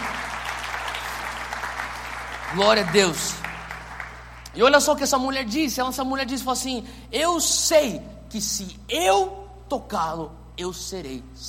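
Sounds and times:
audience applause: 0:00.0 - 0:04.5
speech: 0:02.5 - 0:03.4, 0:04.6 - 0:11.4.

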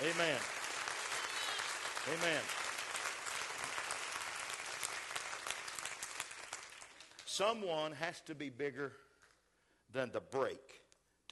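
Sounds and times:
audience clapping hands: 0:00.0 - 0:07.6
speech: 0:00.2 - 0:00.6, 0:02.0 - 0:02.6, 0:07.4 - 0:09.1, 0:09.9 - 0:11.2.

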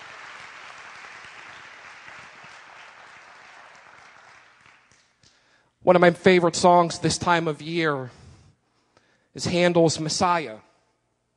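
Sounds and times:
audience hand clapping in praise: 0:00.0 - 0:05.5
speech: 0:05.8 - 0:08.2, 0:09.3 - 0:10.7.

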